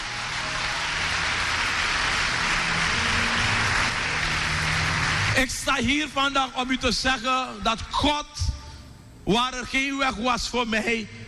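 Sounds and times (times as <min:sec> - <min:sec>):
audience applauding: 0:00.0 - 0:05.7
speech: 0:05.4 - 0:08.6, 0:09.3 - 0:11.2.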